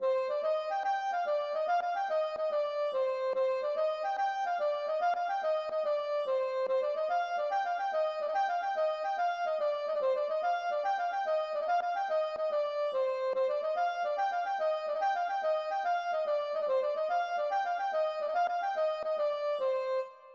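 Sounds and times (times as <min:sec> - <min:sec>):
gavotte: 0:00.0 - 0:20.3.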